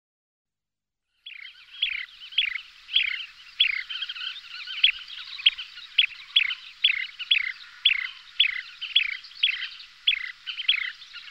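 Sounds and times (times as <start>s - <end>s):
Kentish plover harsh buzzy notes and clicking ticks: 1.2s - 11.2s.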